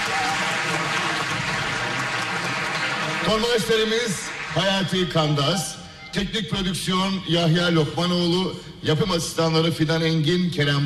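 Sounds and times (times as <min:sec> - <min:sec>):
audience applause: 0:00.0 - 0:05.2
speech: 0:03.3 - 0:10.8.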